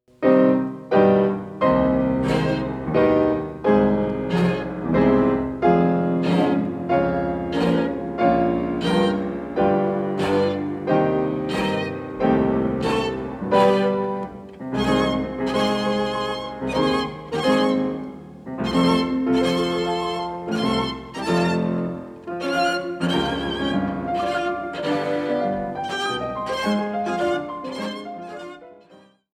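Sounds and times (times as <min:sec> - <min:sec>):
piano trio allegretto in E-flat: 0:00.1 - 0:29.2.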